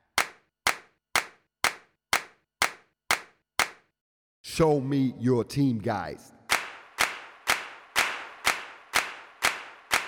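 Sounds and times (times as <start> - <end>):
sharp hand claps: 0.0 - 3.9, 6.5 - 10.0
speech: 4.6 - 6.4.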